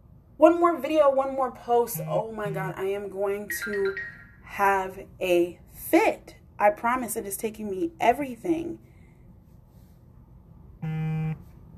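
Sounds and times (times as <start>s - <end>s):
speech: 0.4s - 8.9s
phone buzzing: 2.0s - 2.7s, 10.8s - 11.4s.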